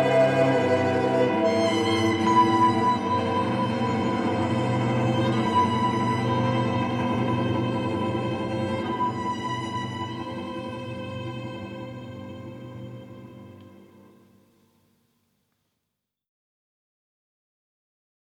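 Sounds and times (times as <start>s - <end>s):
tense solo violin: 0.0s - 14.3s.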